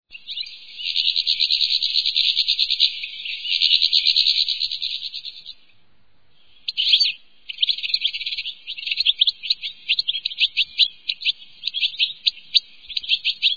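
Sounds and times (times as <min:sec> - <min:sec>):
European goldfinch song: 0:00.1 - 0:13.5.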